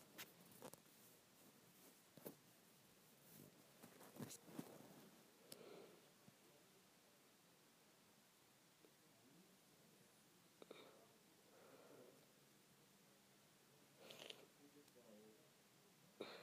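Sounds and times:
scrunchie soft fabric rustles and scrunching: 0.0s - 5.3s
steady low hiss: 0.0s - 16.4s.

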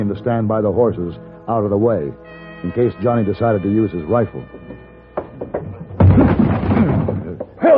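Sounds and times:
speech: 0.0s - 4.9s
cabin door being forced open: 5.2s - 7.6s.

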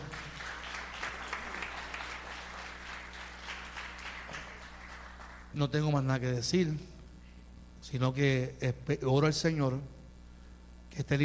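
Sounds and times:
audience applause: 0.0s - 5.6s
low steady hum: 0.0s - 11.2s
speech: 5.6s - 7.0s, 7.9s - 10.0s, 10.9s - 11.2s.

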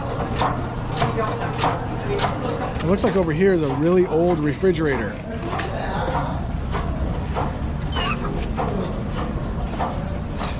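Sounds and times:
really old washing machine churning butter: 0.0s - 10.5s
speech: 1.2s - 5.6s.

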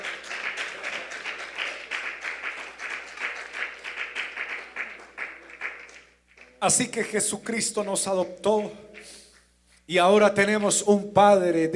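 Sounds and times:
audience applauding: 0.0s - 6.6s
speech: 6.6s - 8.9s, 9.9s - 11.7s.

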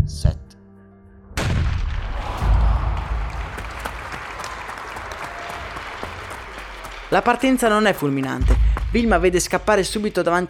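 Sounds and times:
stadium crowd applause: 2.2s - 9.1s
speech: 7.1s - 10.4s.

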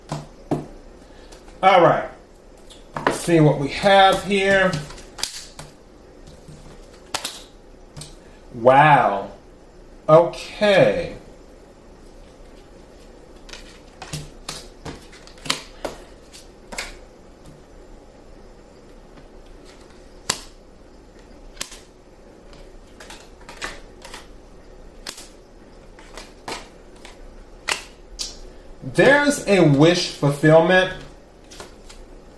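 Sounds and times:
low steady hum: 0.0s - 32.3s
speech: 1.6s - 2.1s, 3.2s - 4.9s, 8.6s - 9.3s, 10.1s - 11.2s, 29.0s - 31.0s
tarot cards being shuffled and handled: 2.6s - 5.7s, 6.3s - 8.2s, 12.2s - 17.0s, 19.4s - 20.5s, 22.5s - 24.3s, 25.0s - 30.1s, 30.9s - 32.1s.

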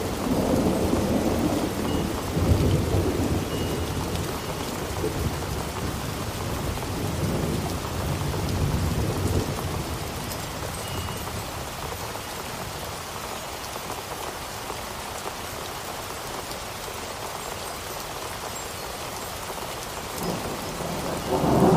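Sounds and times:
thunder rumbling: 0.0s - 10.2s, 20.2s - 21.7s
storm rain pattering on a surface: 0.0s - 21.7s.

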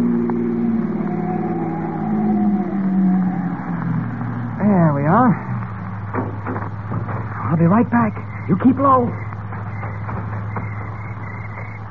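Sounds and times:
car making a U-turn: 0.0s - 11.8s
speech: 7.6s - 9.3s.

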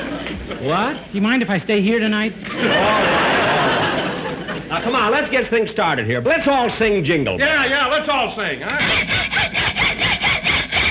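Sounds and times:
speech: 0.5s - 3.2s, 4.8s - 9.6s
laughter: 2.5s - 5.2s
hacksaw sawing: 8.8s - 10.8s.

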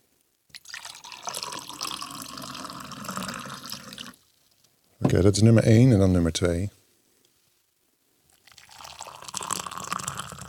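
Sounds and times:
cold and hot water poured into two glasses: 0.5s - 4.2s, 8.4s - 10.4s
speech: 5.1s - 6.8s.

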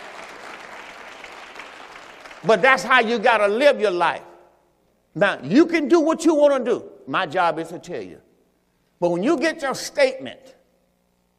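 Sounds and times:
audience clapping: 0.0s - 2.6s
speech: 2.4s - 4.3s, 5.2s - 8.2s, 9.0s - 10.6s.

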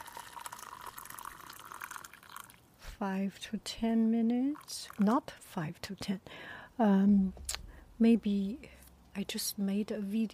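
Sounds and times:
boiling water pouring over oolong tea leaves: 0.0s - 2.6s, 4.5s - 5.1s
speech: 3.0s - 10.3s.

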